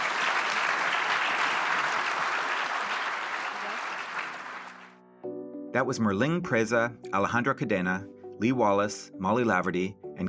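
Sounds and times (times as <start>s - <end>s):
audience applause: 0.0s - 5.0s
speech: 5.8s - 10.2s.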